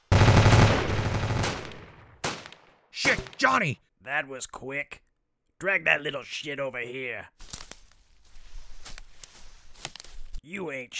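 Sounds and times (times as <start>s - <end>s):
gunshots: 0.1s - 3.5s
speech: 3.0s - 7.5s, 10.4s - 10.9s.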